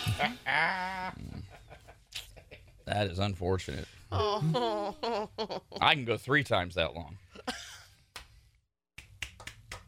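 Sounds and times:
speech: 0.2 - 1.3, 2.9 - 7.3
golf clap, quiet polite clapping: 8.1 - 8.4, 8.9 - 9.8.

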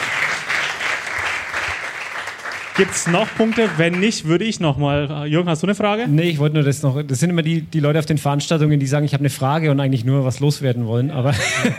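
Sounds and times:
applause: 0.0 - 4.2
speech: 2.8 - 11.7
laughter: 11.2 - 11.7.

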